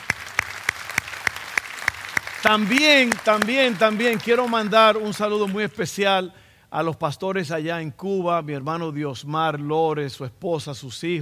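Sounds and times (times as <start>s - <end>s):
sharp prominent claps: 0.0s - 5.6s
audience applause: 0.0s - 5.8s
speech: 2.4s - 11.2s.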